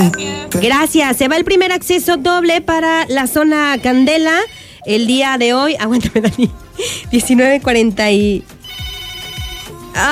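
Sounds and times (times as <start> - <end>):
speech: 0.0 - 8.6
telephone ringing with an incoming call: 3.4 - 5.2, 8.6 - 10.1.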